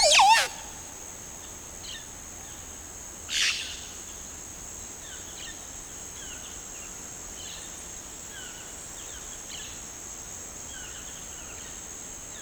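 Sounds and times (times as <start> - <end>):
Montezuma oropendola Psarocolius montezuma song: 0.0 - 0.8.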